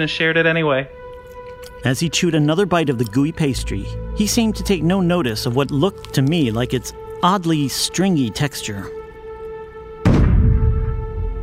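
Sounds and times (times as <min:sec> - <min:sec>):
speech: 0:00.0 - 0:01.0, 0:01.8 - 0:09.0
deep blunt knock against a door: 0:10.0 - 0:11.0.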